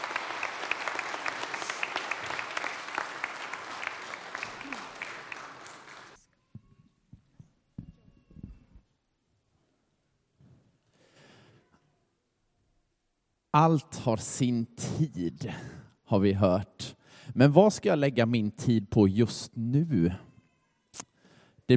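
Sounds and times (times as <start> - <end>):
audience applause: 0.0 - 6.2
speech: 13.6 - 20.3.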